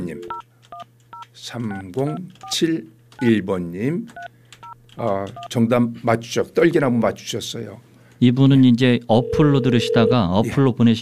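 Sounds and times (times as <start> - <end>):
telephone keypad tones dialing to call a listener: 0.0 - 0.8, 9.1 - 10.3
speech: 0.1 - 0.4, 1.4 - 4.3, 5.0 - 11.0.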